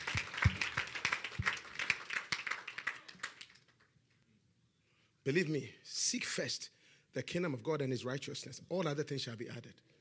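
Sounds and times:
audience clapping: 0.0s - 3.9s
speech: 5.3s - 9.9s.

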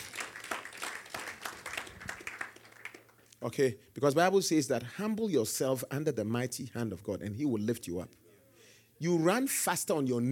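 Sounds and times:
crowd clapping: 0.0s - 3.3s
speech: 3.4s - 8.2s, 9.0s - 10.3s.

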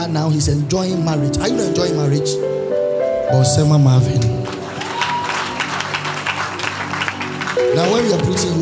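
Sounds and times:
speech: 0.1s - 2.5s, 3.3s - 4.5s, 7.8s - 8.5s
congregation applause during a church sermon: 4.4s - 8.5s.

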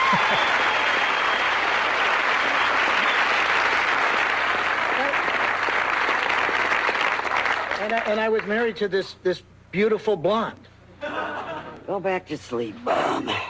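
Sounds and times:
audience clapping wildly: 0.0s - 8.8s
speech: 0.1s - 0.6s, 7.9s - 11.2s, 11.9s - 13.4s
laughter: 11.0s - 11.9s.

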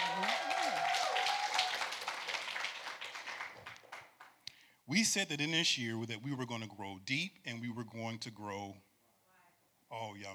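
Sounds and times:
audience clapping hands: 0.0s - 4.5s
speech: 4.9s - 8.9s, 9.9s - 10.3s.

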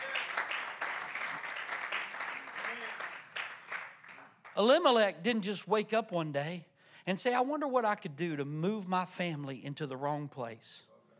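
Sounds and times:
audience clapping: 0.0s - 4.8s
speech: 4.6s - 10.9s.

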